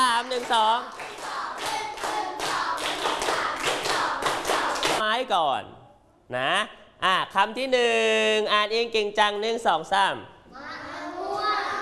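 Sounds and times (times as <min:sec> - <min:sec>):
children clapping hands in rhythm: 0:00.0 - 0:05.0
speech: 0:00.3 - 0:01.2, 0:05.2 - 0:10.7.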